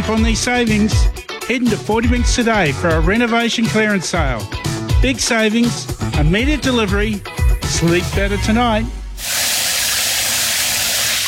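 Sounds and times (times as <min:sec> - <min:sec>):
speech: 0:00.0 - 0:09.4
shower water running: 0:09.2 - 0:11.2.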